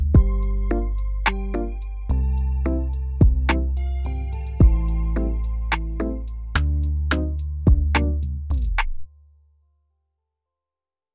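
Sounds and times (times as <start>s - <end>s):
cute love lofi music: 0.2s - 8.8s.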